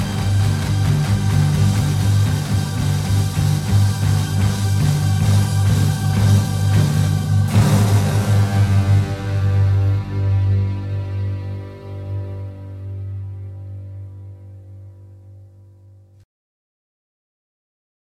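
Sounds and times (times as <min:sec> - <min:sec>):
fanfare: 0:00.0 - 0:12.9.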